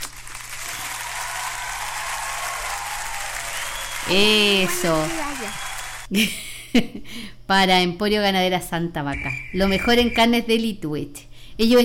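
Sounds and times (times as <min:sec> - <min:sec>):
applause sound effect: 0:00.0 - 0:06.1
speech: 0:04.1 - 0:11.8.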